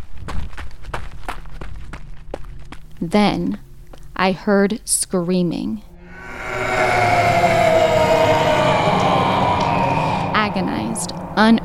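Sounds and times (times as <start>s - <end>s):
running footsteps on a forest path: 0.0s - 4.2s
speech: 3.0s - 5.9s, 10.6s - 11.6s
low rumble: 5.9s - 11.6s.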